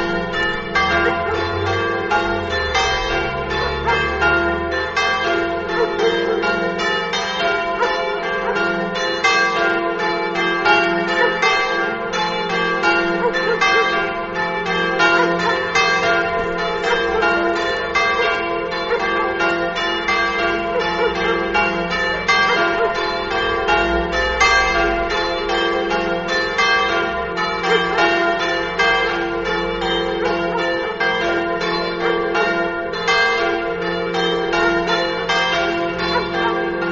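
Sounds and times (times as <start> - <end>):
bells in Rodeano: 0.0 - 36.9.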